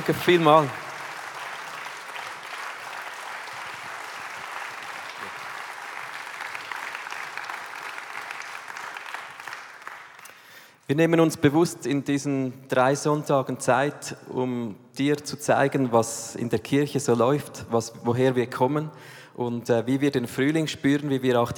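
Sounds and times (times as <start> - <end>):
speech: 0.0 - 0.8, 10.9 - 21.5
applause: 0.0 - 10.8.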